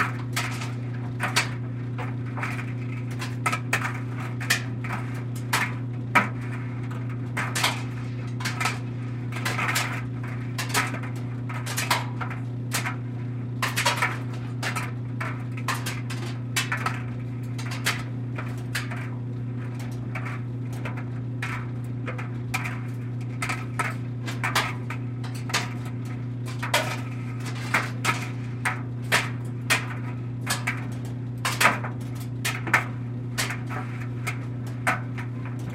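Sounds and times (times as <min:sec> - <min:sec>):
household clothes dryer switching on running and off: 0:00.0 - 0:35.7.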